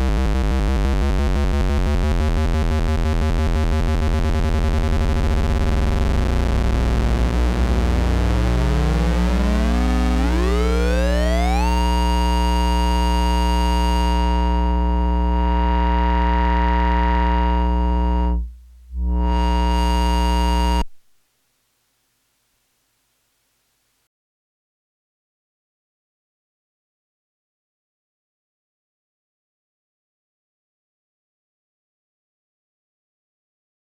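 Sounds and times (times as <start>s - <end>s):
Korg Monotron Duo synthesizer oscillator tones: 0.0s - 21.0s.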